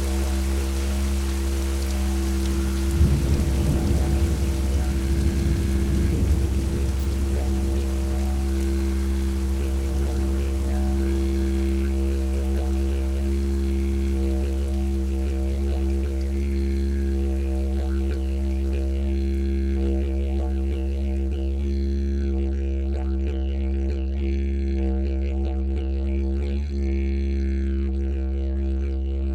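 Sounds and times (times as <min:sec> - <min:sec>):
ambient didgeridoo: 0:00.0 - 0:29.3.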